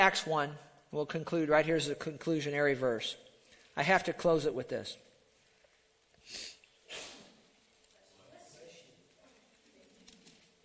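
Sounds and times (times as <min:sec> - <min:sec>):
speech: 0:00.0 - 0:03.2, 0:03.8 - 0:05.1
person sneezing: 0:06.2 - 0:07.5.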